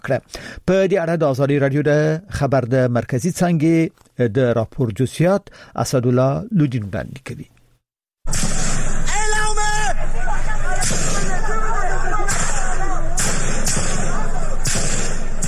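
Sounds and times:
speech: 0.0s - 7.6s
gunfire from the ruling military at protesters in Mandalay, Myanmar: 8.3s - 9.1s, 10.8s - 11.5s, 12.2s - 15.4s
raised voices in a noisy street: 9.0s - 15.4s.

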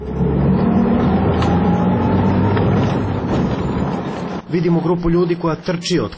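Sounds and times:
jeep engine roaring as it speeds up: 0.0s - 4.5s
speech: 4.6s - 6.1s.

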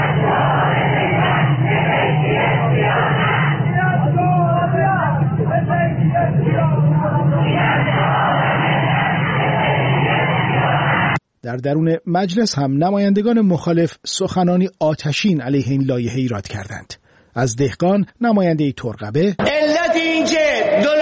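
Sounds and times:
protesters chanting slogans outside parliament: 0.0s - 10.5s
speech: 11.6s - 21.0s.

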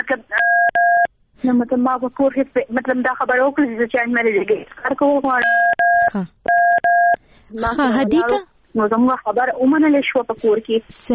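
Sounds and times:
speech: 0.1s - 0.5s, 1.4s - 6.6s, 7.5s - 11.1s
telephone number dialing DTMF keypad beeps: 0.4s - 1.1s, 5.4s - 7.2s.

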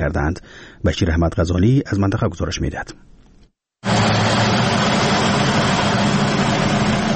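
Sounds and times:
speech: 0.0s - 3.2s
constant low hum: 3.8s - 7.1s
small electricity turbine in Doab village, Khinjan district, Baghlan: 3.8s - 7.1s.

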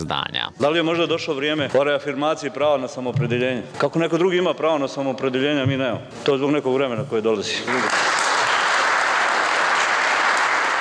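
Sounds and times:
speech: 0.0s - 8.2s
applause in an assembly hall: 7.6s - 10.7s.

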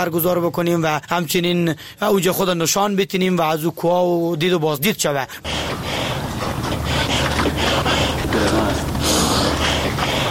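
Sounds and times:
speech: 0.0s - 6.3s
heavy labored breathing of a mountaineer from Firozkoh climbing Siahkoh peak: 5.3s - 10.2s.

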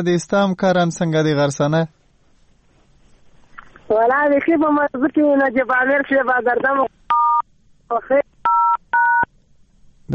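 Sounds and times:
speech: 0.0s - 2.0s, 3.9s - 7.0s, 7.9s - 8.8s
mobile phone keypad tone beeps: 8.5s - 9.3s.

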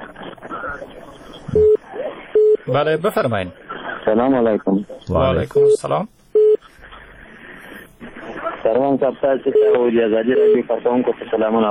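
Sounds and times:
telephone beep from a disconnected phone-in call: 1.5s - 1.8s, 2.4s - 2.8s, 5.6s - 5.8s, 6.4s - 6.6s, 9.6s - 10.6s
speech: 2.7s - 6.2s, 8.6s - 11.6s.

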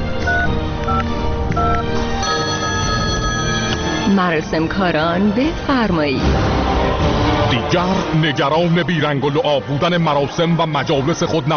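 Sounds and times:
electronic telephone keypad beeps as a number is dialed: 0.2s - 4.0s
speech: 4.2s - 11.5s.

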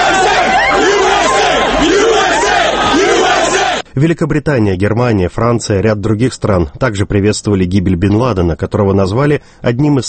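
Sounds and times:
thousands of people cheering in the streets of Washington and New York: 0.0s - 3.8s
speech: 4.0s - 10.0s.

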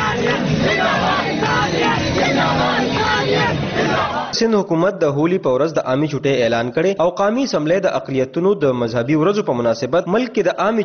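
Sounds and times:
crowd shouting slogans in unison at a Holi celebration: 0.0s - 4.4s
speech: 4.4s - 10.8s.

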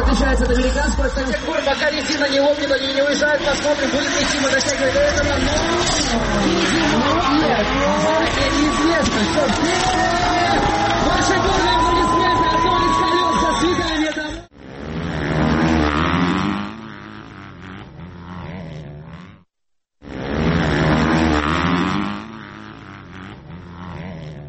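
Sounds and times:
crowd chatter: 0.0s - 14.4s
drifting car engines revving at a bikers' festival: 0.0s - 19.4s, 20.0s - 24.4s
tires squealing: 0.1s - 14.4s.

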